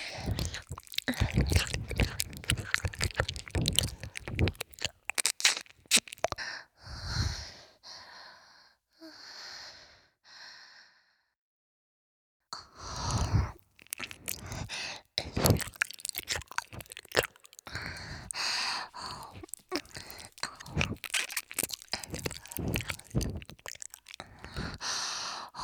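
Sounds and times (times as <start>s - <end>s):
ear licking: 0.0s - 6.5s, 12.8s - 25.6s.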